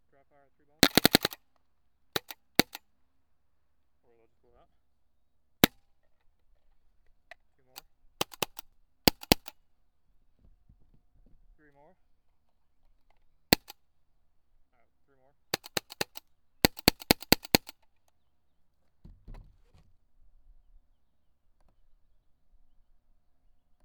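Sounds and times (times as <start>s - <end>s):
Autococker paintball gun shots: 0.8s - 1.4s, 2.2s - 2.8s, 8.2s - 9.5s, 15.6s - 17.7s.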